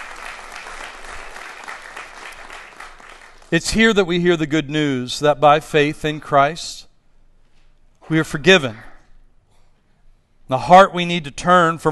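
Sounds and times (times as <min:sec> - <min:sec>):
audience applause: 0:00.0 - 0:03.5
speech: 0:03.5 - 0:06.9, 0:08.1 - 0:08.9, 0:10.5 - 0:11.8.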